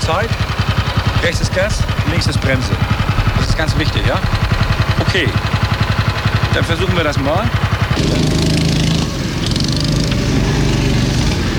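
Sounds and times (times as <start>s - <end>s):
speech: 0.1s - 0.5s, 1.2s - 5.6s, 6.6s - 8.6s
go-kart engine droning: 1.1s - 11.5s.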